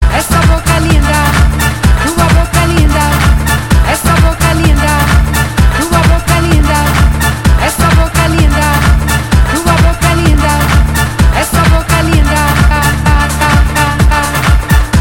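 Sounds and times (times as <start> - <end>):
dynamic rhythm: 0.0 - 15.0.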